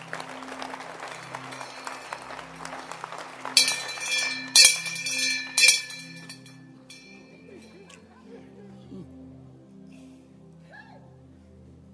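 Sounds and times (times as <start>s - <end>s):
crowd clapping: 0.0s - 6.3s
bright metallic bell ringing: 1.4s - 2.9s, 3.5s - 7.2s.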